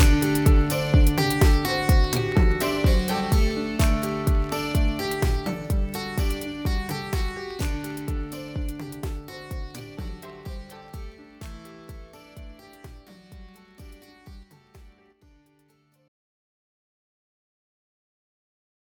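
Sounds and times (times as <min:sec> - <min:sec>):
practice beat: 0:00.0 - 0:15.0.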